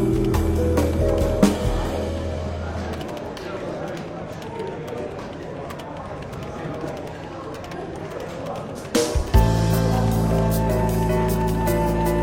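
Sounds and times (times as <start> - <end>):
soft jazz music: 0.0 - 3.0, 9.4 - 12.2
chatter in a London bookshop café: 0.0 - 12.2.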